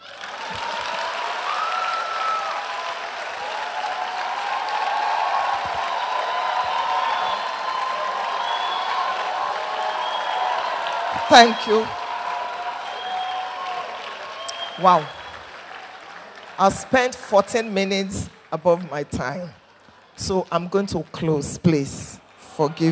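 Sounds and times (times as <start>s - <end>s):
crowd cheering and whooping: 0.0s - 16.6s
crowd clapping: 0.0s - 22.9s
speech: 11.3s - 12.0s, 14.8s - 15.2s, 16.6s - 19.6s, 20.2s - 22.9s.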